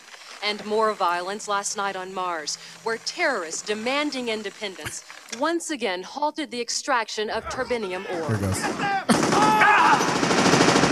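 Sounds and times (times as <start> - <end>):
speech: 0.4 - 10.2
machine gun fire: 8.5 - 10.9.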